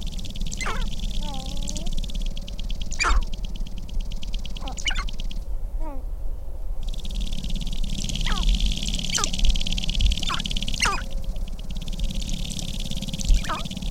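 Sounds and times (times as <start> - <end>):
sharp-tailed grouse cooing: 0.1 - 3.8, 4.5 - 5.2, 5.8 - 6.1, 6.9 - 13.8.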